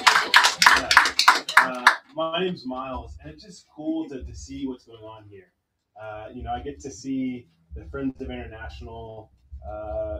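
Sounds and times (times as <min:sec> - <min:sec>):
audience clapping: 0:00.0 - 0:02.2
speech: 0:02.2 - 0:10.1.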